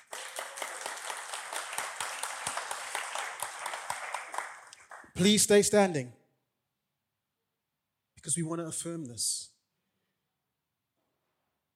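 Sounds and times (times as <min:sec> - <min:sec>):
audience round of applause: 0:00.0 - 0:05.3
speech: 0:05.2 - 0:06.2, 0:08.2 - 0:09.5.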